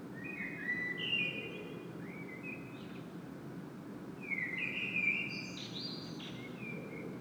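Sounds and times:
common blackbird singing: 0:00.2 - 0:03.0, 0:04.2 - 0:07.1.

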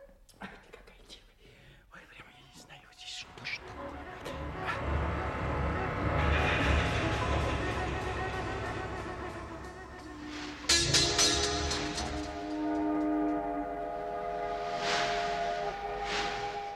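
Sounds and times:
long heavy train rumbling along: 0:03.3 - 0:16.7
train steam whistle: 0:03.7 - 0:16.7.

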